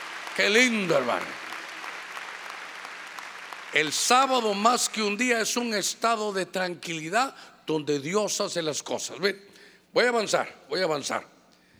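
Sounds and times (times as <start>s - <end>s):
audience clapping: 0.0s - 5.0s
speech: 0.4s - 1.4s, 3.7s - 11.3s.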